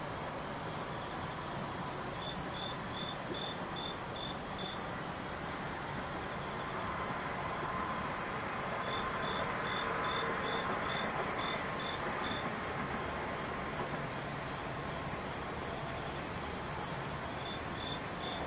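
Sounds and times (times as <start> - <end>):
insects chirping: 0.0 - 18.4.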